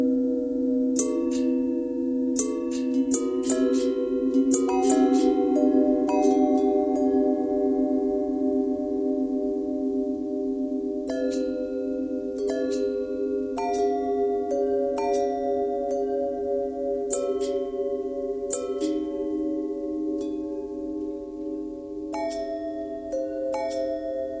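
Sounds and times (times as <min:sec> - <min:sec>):
long bell with bend and twist: 0:00.0 - 0:24.3.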